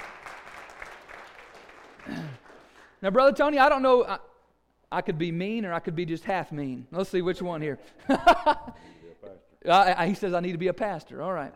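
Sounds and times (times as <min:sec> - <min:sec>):
church congregation applause for a volunteer: 0:00.0 - 0:03.2
speech: 0:03.0 - 0:04.3, 0:04.9 - 0:11.5.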